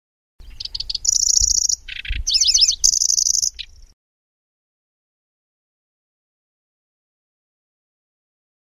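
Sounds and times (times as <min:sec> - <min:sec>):
lanceolated warbler singing: 0:00.4 - 0:04.0.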